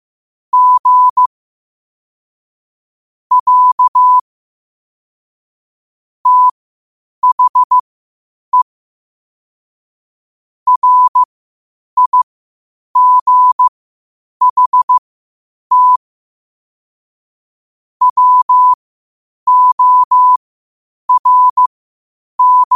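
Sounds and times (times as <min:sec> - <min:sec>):
morse code at 5 wpm: 0:00.5 - 0:01.3, 0:03.3 - 0:04.2, 0:06.2 - 0:06.5, 0:07.2 - 0:07.8, 0:10.7 - 0:11.3, 0:12.0 - 0:12.2, 0:13.0 - 0:13.7, 0:14.4 - 0:15.0, 0:15.7 - 0:16.0, 0:18.0 - 0:18.8, 0:19.5 - 0:20.4, 0:21.1 - 0:21.7, 0:22.4 - 0:22.7.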